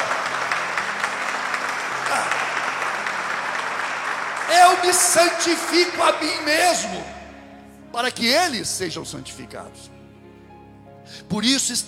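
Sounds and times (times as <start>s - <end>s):
audience applause: 0.0s - 6.9s
speech: 4.7s - 7.2s, 8.0s - 10.0s, 11.1s - 11.8s.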